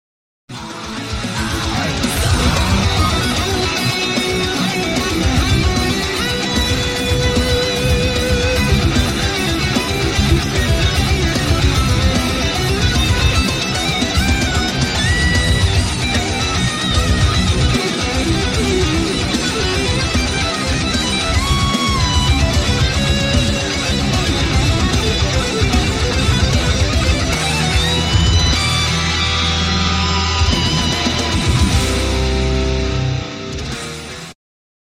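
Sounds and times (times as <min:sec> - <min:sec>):
guitar solo: 0:00.5 - 0:34.4.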